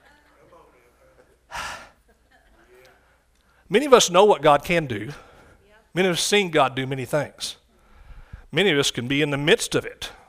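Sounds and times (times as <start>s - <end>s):
preacher gasping inhale catching his breath: 1.5s - 2.0s, 7.7s - 8.5s
speech: 3.7s - 5.3s, 6.0s - 7.6s, 8.5s - 10.2s.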